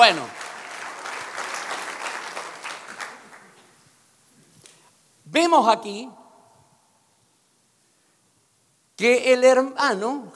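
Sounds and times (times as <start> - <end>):
audience clapping: 0.0 - 3.8
speech: 0.1 - 0.4, 5.3 - 6.2, 9.0 - 10.3.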